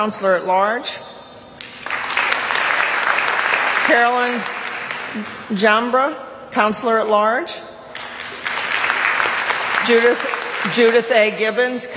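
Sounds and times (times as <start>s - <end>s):
speech: 0.0s - 1.2s, 3.9s - 7.7s, 9.9s - 11.9s
audience applause at a library association meeting: 1.8s - 5.4s, 8.0s - 11.3s.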